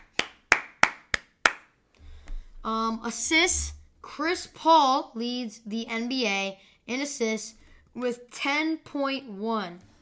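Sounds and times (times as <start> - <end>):
clapping applause for Rudy Gobert: 0.0 - 1.6
speech: 2.6 - 9.9.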